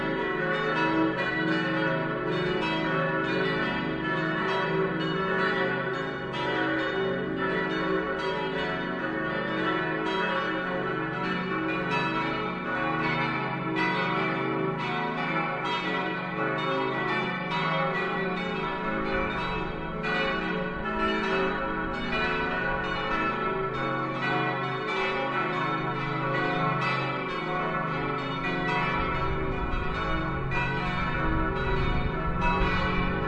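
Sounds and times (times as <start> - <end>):
multi-voice bell peal tuned cis1 e1 fis1 a1 h1 cis2: 0.0 - 33.2.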